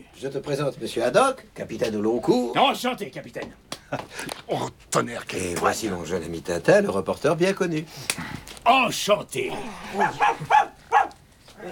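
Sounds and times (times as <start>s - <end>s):
speech: 0.2s - 10.7s
frightened dog barking: 9.5s - 11.7s.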